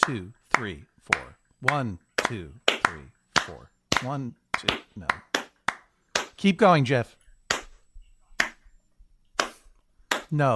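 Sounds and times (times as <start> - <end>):
speech: 0.0 - 5.3, 6.4 - 7.2, 10.3 - 10.5
hand claps: 0.0 - 6.4, 7.5 - 7.8, 8.4 - 8.6, 9.4 - 10.4.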